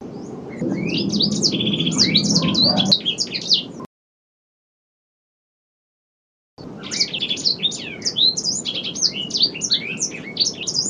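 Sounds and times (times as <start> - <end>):
bird singing vigorously: 0.0 - 3.9, 6.6 - 10.8.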